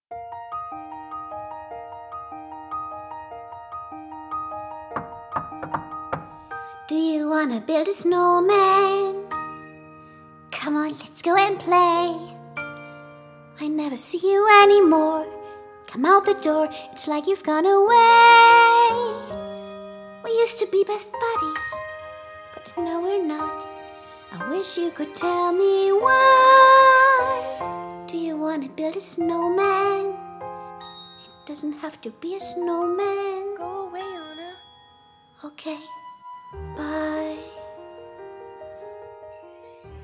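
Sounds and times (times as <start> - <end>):
child singing a snowman song: 6.9 - 9.3, 10.6 - 12.4, 13.6 - 15.3, 15.9 - 19.4, 20.2 - 21.8, 22.6 - 23.7, 24.3 - 30.2, 31.5 - 34.6, 36.7 - 37.7.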